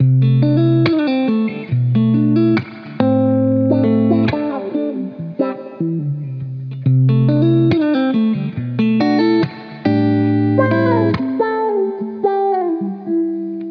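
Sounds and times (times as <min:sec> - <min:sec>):
guitar loops: 0:00.0 - 0:13.6.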